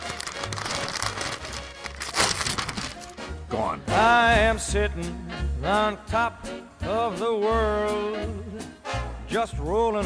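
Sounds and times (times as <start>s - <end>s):
paper betting ticket from a horse race torn up: 0.0s - 3.2s
speech: 3.5s - 8.7s, 9.3s - 10.0s.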